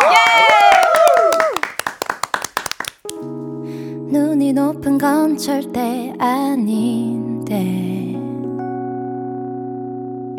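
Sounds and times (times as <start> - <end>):
people cheering and whooping: 0.0 - 1.7
hands clapping: 0.0 - 3.2
speech: 5.0 - 8.1.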